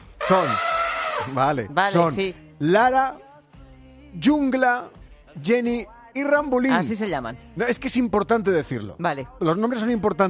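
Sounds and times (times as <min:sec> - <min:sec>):
person imitating elephant trumpeting: 0:00.2 - 0:01.5
speech: 0:00.3 - 0:03.2, 0:04.1 - 0:10.2.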